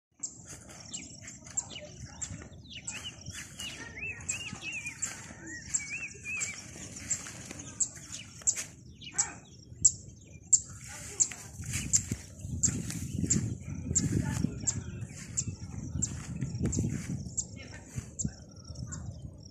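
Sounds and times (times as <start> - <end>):
small birds chirping and twittering: 0.1 - 19.5.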